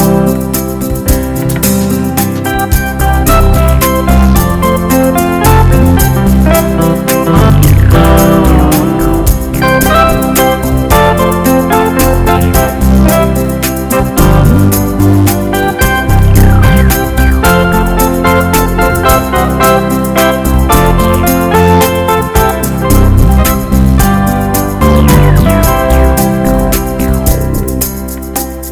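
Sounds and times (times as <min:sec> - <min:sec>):
happy ballad: 0:00.0 - 0:28.7.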